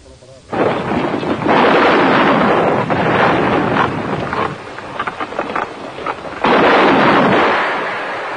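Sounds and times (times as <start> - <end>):
heavy naval gunfire bombarding a city: 0.5 - 8.3.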